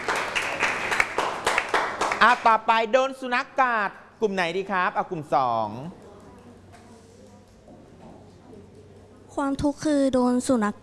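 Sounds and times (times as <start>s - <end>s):
classroom applause for a student: 0.0s - 2.5s
speech: 2.2s - 6.0s, 9.4s - 10.8s.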